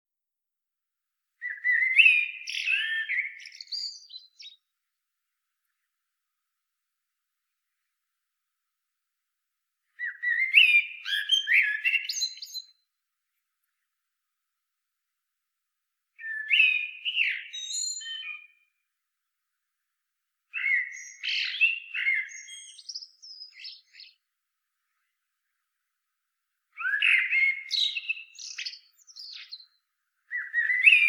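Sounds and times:
Common blackbird singing: 1.4s - 4.6s, 10.0s - 12.8s, 16.2s - 18.6s, 20.6s - 24.2s, 26.8s - 31.0s.

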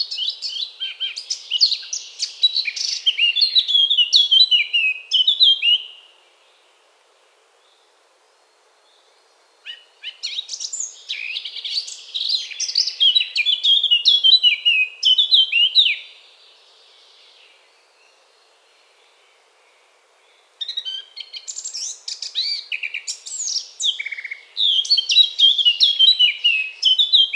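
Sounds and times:
Eurasian blackcap singing: 0.1s - 5.9s, 10.1s - 16.1s, 20.6s - 27.3s.

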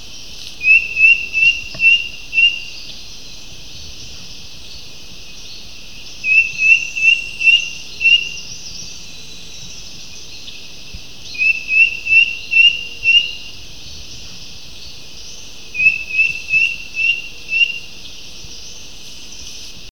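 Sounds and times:
hiss: 0.0s - 19.8s
bird upslurred whistled notes: 0.6s - 2.7s, 6.2s - 8.5s, 11.4s - 13.5s, 15.8s - 17.8s.

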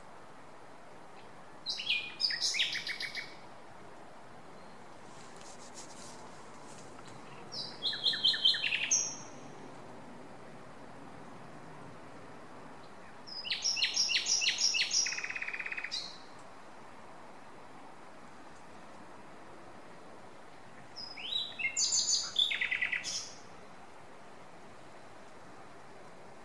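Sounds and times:
common nightingale song: 1.1s - 3.6s, 4.4s - 9.9s, 12.8s - 17.6s, 20.0s - 24.0s.

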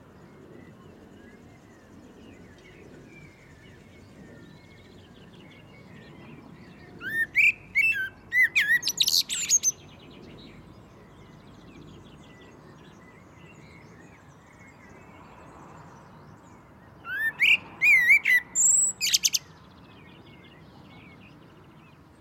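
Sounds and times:
Common blackbird Turdus merula whistling and twittering: 4.5s - 10.0s, 17.0s - 19.6s.

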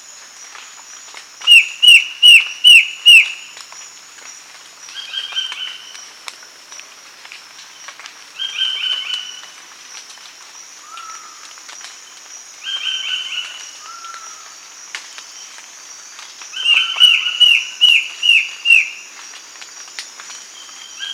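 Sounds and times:
bird whistling: 1.5s - 3.4s, 16.7s - 19.0s.

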